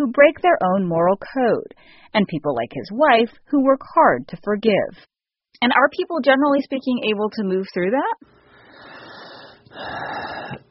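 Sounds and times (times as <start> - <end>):
speech: 0.1 - 8.4, 9.7 - 10.6
deep breath taken by speaker: 1.8 - 2.1, 8.5 - 10.6.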